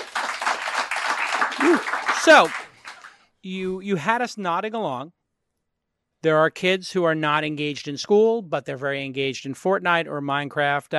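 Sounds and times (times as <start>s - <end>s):
audience applause: 0.0s - 3.2s
speech: 1.5s - 2.6s, 3.4s - 5.2s, 6.2s - 10.9s.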